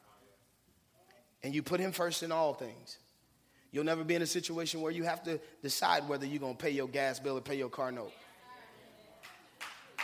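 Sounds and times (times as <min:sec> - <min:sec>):
speech: 0:01.4 - 0:03.0, 0:03.7 - 0:08.2
audience clapping: 0:09.2 - 0:10.0.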